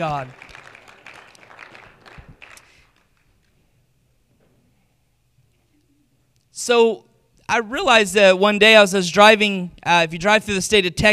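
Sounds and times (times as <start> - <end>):
speech: 0.0 - 0.5, 6.6 - 11.1
crowd clapping: 0.0 - 3.7.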